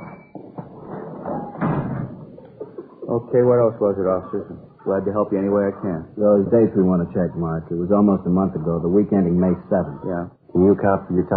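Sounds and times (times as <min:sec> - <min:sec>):
knocks and thuds: 0:00.0 - 0:02.4
speech: 0:03.1 - 0:11.3.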